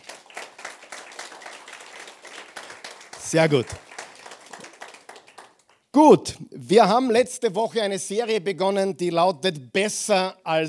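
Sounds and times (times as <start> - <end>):
applause: 0.0 - 5.9
speech: 3.3 - 3.9, 6.0 - 10.6.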